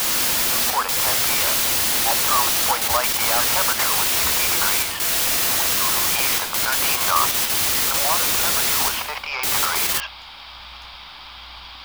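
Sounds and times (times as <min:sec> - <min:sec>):
news loop static effect: 0:00.0 - 0:10.0.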